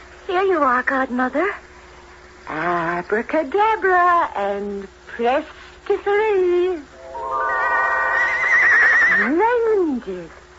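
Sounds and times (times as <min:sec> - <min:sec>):
speech: 0:00.3 - 0:01.6, 0:02.5 - 0:07.4, 0:09.2 - 0:10.4
white horse pulling a golden coach whinnying: 0:07.8 - 0:09.3.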